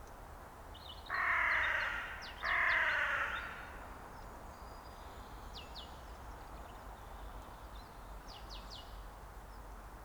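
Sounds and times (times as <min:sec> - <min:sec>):
carrion crow cawing: 0:01.1 - 0:03.8.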